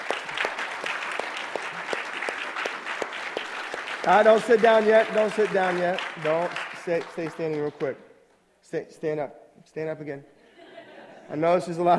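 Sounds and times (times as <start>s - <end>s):
audience applause for veterans: 0.0s - 7.9s
speech: 4.0s - 8.1s, 8.7s - 10.3s, 11.3s - 11.9s.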